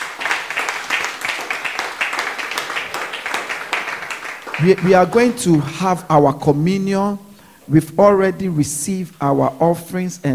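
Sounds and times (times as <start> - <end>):
audience clapping hands: 0.0 - 5.8
speech: 4.6 - 10.3.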